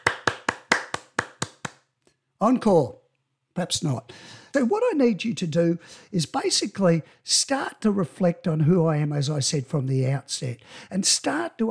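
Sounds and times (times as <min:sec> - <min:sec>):
applause sound effect: 0:00.0 - 0:01.8
speech: 0:02.4 - 0:03.0, 0:03.6 - 0:11.6.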